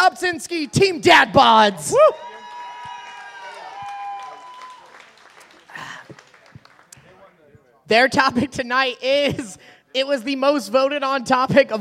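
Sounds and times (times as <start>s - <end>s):
speech: 0.1s - 2.3s, 7.9s - 11.7s
audience cheering: 1.9s - 6.8s
audience applause: 2.2s - 7.3s.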